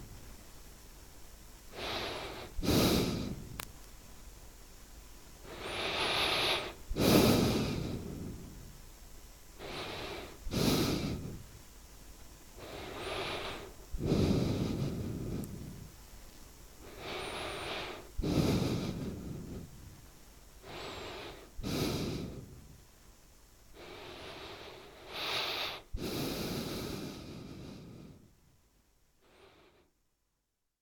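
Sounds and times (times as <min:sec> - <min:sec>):
breath through a sound horn in a sound installation: 0:01.7 - 0:03.6, 0:05.5 - 0:08.7, 0:09.6 - 0:11.5, 0:12.6 - 0:16.0, 0:16.8 - 0:20.0, 0:20.6 - 0:22.8, 0:23.8 - 0:28.4, 0:29.2 - 0:30.0.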